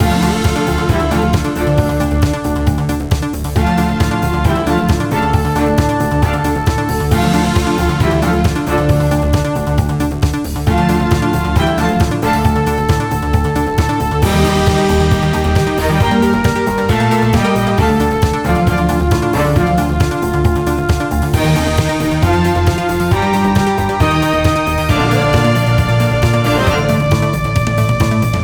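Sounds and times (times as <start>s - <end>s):
heroic music: 0.0s - 28.4s.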